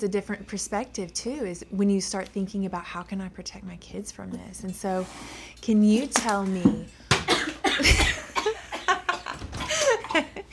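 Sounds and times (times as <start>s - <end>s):
speech: 0.0s - 7.0s, 7.8s - 8.2s
coughing fit: 7.2s - 10.4s.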